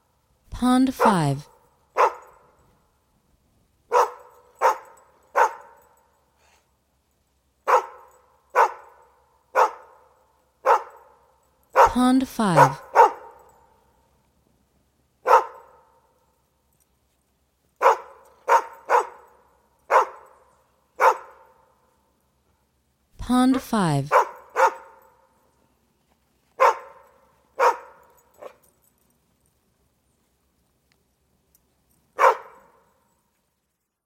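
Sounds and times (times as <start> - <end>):
speech: 0.6 - 1.5, 11.9 - 12.8, 23.4 - 24.2
dog barking with echo: 2.0 - 2.5, 3.9 - 5.8, 7.6 - 11.2, 11.8 - 12.0, 12.6 - 13.4, 15.2 - 16.0, 17.8 - 20.4, 21.0 - 21.6, 24.1 - 25.1, 26.6 - 28.6, 32.2 - 32.8.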